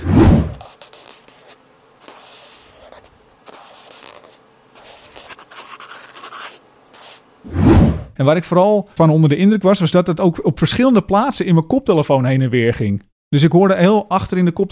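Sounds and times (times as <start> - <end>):
cotton swab rubbing on microphone: 0.0 - 8.0
speech: 8.2 - 14.6.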